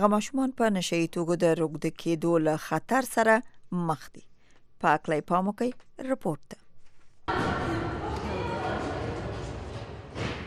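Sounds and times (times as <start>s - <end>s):
speech: 0.0s - 6.6s, 7.3s - 7.6s
busy court noise of Afghanistan's wheelchair basketball team practising: 7.3s - 10.4s.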